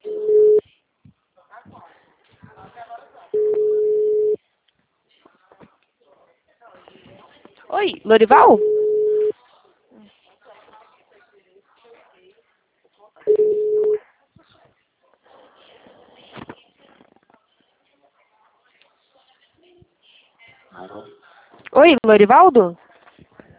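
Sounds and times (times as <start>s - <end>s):
telephone line beep after a dropped call: 0.0s - 0.6s, 3.4s - 4.4s, 8.3s - 9.3s, 13.3s - 14.0s
speech: 7.8s - 8.7s, 22.0s - 22.8s.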